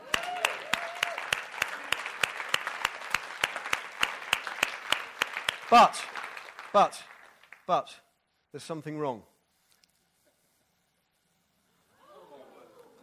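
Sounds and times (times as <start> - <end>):
audience applause: 0.0 - 7.7
speech: 5.7 - 7.1, 7.7 - 9.3.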